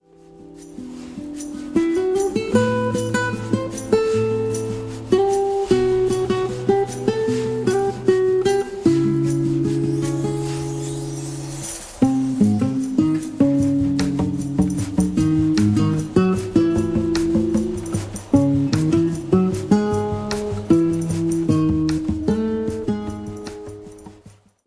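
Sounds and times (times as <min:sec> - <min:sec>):
bossa nova music: 0:00.0 - 0:24.6.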